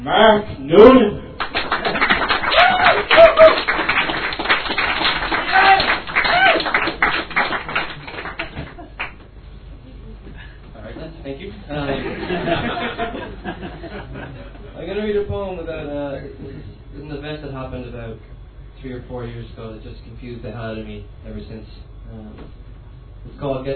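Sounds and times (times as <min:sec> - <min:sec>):
speech: 0:00.0 - 0:01.2, 0:18.9 - 0:23.7
crowd applause: 0:01.4 - 0:09.2
laughter: 0:11.8 - 0:14.8.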